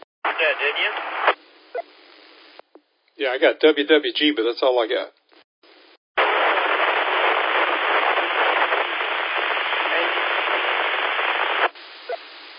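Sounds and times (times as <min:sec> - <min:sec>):
radio static and hiss from another repeater's input: 0:00.0 - 0:02.7, 0:05.3 - 0:12.5
speech: 0:00.5 - 0:01.4, 0:03.2 - 0:05.2.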